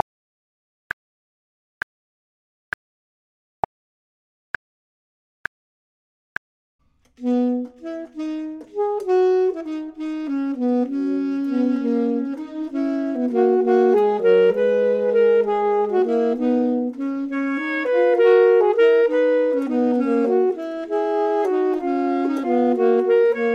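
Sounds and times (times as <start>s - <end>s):
clarinet: 7.2s - 23.5s
saxophone: 7.2s - 23.5s.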